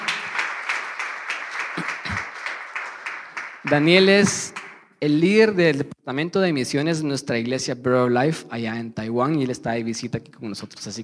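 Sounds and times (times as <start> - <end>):
audience applause: 0.0 - 4.8
speech: 3.7 - 11.0.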